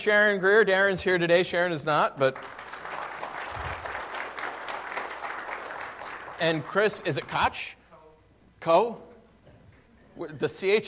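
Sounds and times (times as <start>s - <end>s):
speech: 0.0s - 2.7s, 6.4s - 7.8s, 8.6s - 9.1s, 10.2s - 10.8s
audience applause: 2.2s - 7.4s.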